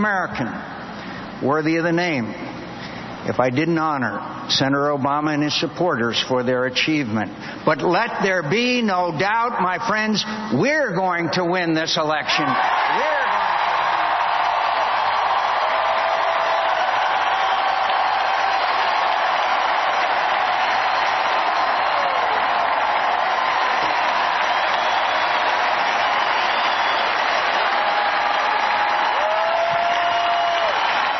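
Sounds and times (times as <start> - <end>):
speech: 0.0 - 0.8, 1.4 - 2.5, 3.2 - 13.2
large crowd screaming and cheering: 12.3 - 31.1
high whoops: 12.4 - 31.1.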